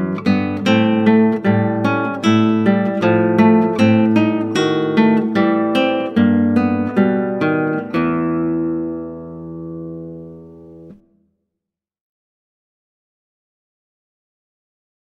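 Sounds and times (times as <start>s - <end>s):
classical guitar: 0.0s - 11.2s.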